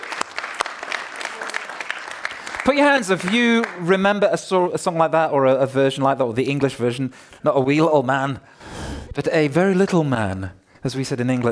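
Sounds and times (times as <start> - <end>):
applause: 0.0 - 4.2
speech: 2.6 - 11.4.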